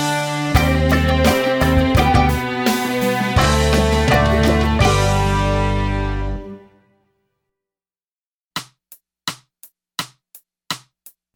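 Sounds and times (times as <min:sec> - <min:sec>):
strings playing a G major scale: 0:00.0 - 0:06.8.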